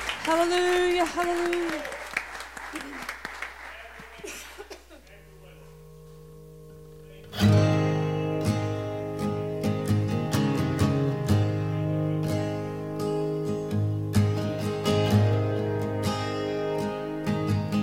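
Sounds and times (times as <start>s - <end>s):
audience clapping and cheering: 0.0s - 4.7s
speech: 0.2s - 2.0s, 2.7s - 3.2s
laughter: 2.6s - 5.3s
full band playing: 5.2s - 17.8s
soft sustained keyboard chords: 5.2s - 17.8s.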